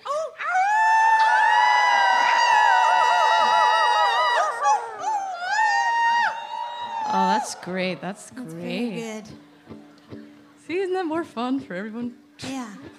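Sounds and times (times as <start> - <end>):
crowd of people howling like wolves: 0.4 - 9.2
speech: 7.6 - 12.9.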